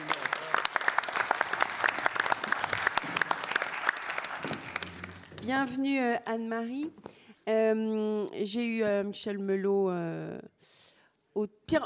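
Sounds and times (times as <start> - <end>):
crowd applause: 0.0 - 5.4
speech: 5.5 - 10.8, 11.4 - 11.8.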